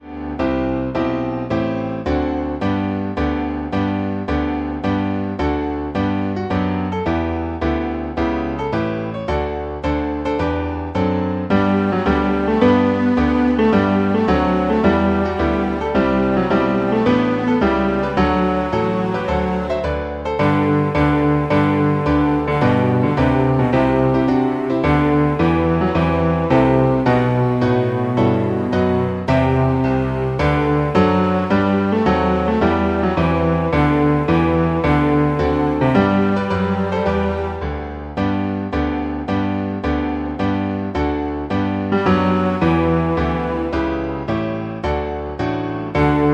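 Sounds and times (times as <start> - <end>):
bass: 0.0 - 46.3.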